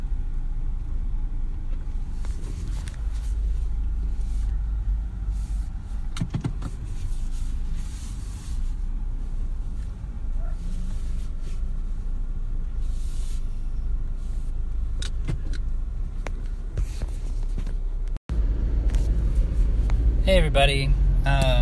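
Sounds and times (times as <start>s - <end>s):
moving car road noise and engine drone heard from inside: 0.0s - 21.6s
speech: 20.5s - 21.5s.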